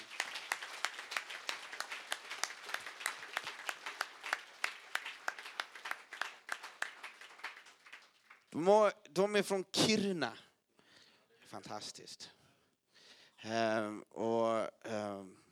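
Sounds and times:
audience applause: 0.0s - 8.5s
speech: 8.6s - 10.4s, 11.5s - 12.4s, 13.4s - 15.4s.

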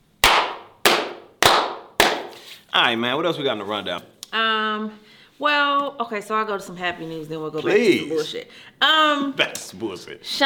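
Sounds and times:
slow clap: 0.2s - 2.5s
speech: 2.8s - 10.4s.

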